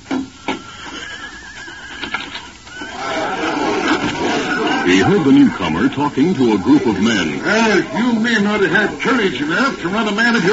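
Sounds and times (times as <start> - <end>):
horse whinnying: 0.4 - 5.6
laughter: 3.0 - 10.5
speech: 5.0 - 10.5.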